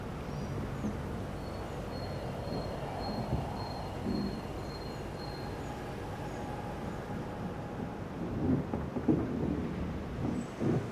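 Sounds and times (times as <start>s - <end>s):
birds in a village: 0.0s - 7.4s
wind breeze in a village: 0.0s - 10.8s.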